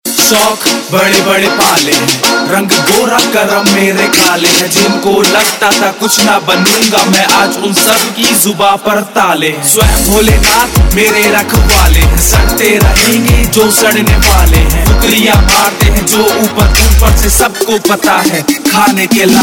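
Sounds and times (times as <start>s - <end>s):
Punjabi rap ringtone: 0.1s - 19.4s.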